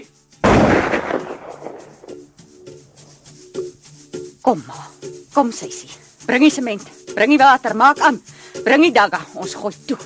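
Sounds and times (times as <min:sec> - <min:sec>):
single loud gunshot: 0:00.4 - 0:02.2
speech: 0:04.5 - 0:10.0.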